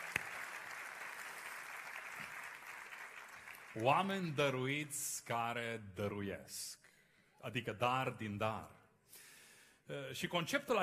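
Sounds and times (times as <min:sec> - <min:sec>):
audience applause: 0:00.0 - 0:04.1
speech: 0:03.8 - 0:06.8, 0:07.4 - 0:09.2, 0:09.9 - 0:10.8.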